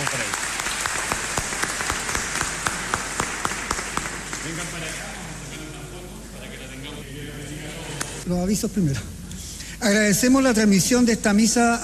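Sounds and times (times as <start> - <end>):
audience applause: 0.0 - 5.4
speech: 8.3 - 9.2, 9.8 - 11.8.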